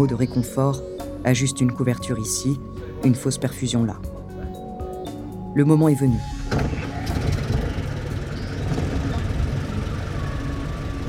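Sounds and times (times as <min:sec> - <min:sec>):
speech: 0:00.0 - 0:04.2, 0:05.6 - 0:06.8
ambulance engine idling: 0:06.2 - 0:11.0.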